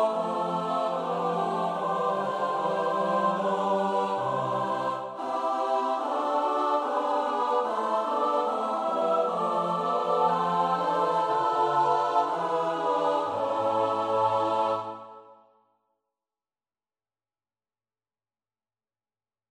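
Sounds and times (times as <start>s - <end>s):
soprano alto tenor bass choir: 0.0s - 15.5s.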